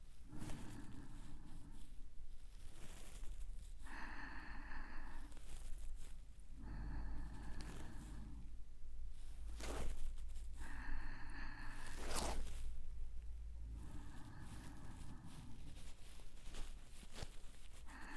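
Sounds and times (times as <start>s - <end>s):
ear cleaning in the right ear: 0.2s - 8.6s, 9.2s - 12.8s, 13.7s - 18.1s.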